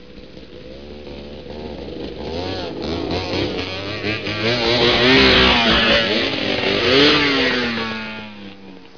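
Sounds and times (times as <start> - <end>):
vehicle: 0.0 - 8.9.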